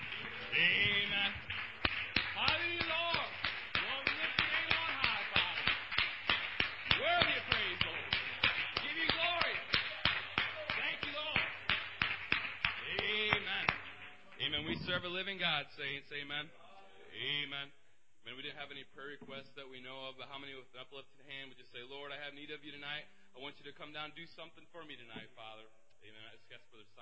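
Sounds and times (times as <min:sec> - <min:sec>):
church congregation applauding: 0:00.0 - 0:15.1
speech: 0:00.6 - 0:01.4, 0:15.3 - 0:16.6, 0:18.4 - 0:27.0.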